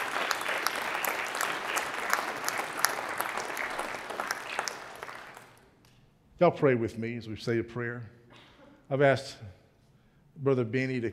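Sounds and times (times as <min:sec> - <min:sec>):
audience clapping in praise: 0:00.0 - 0:05.9
speech: 0:06.4 - 0:08.2, 0:08.9 - 0:09.6, 0:10.4 - 0:11.1.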